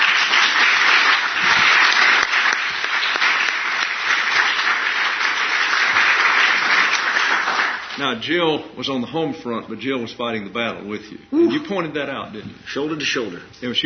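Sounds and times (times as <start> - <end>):
round of applause: 0.0 - 8.0
speech: 8.0 - 13.8.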